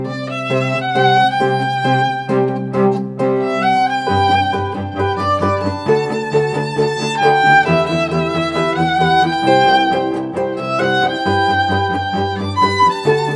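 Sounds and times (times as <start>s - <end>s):
harp playing a song melody: 0.1s - 13.3s.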